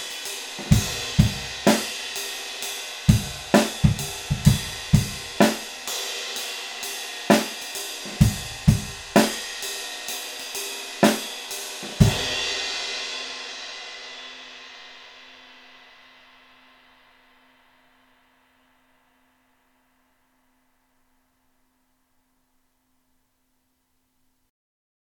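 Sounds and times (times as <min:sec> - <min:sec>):
20 ride cymbal: 0:00.0 - 0:19.7.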